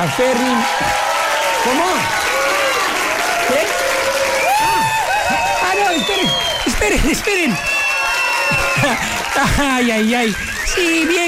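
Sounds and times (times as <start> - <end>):
speech: 0.0 - 2.3, 6.8 - 7.8, 8.5 - 11.2
large audience applause: 0.0 - 11.2
whoops and whistles: 4.3 - 6.7, 7.5 - 9.3, 10.3 - 11.1.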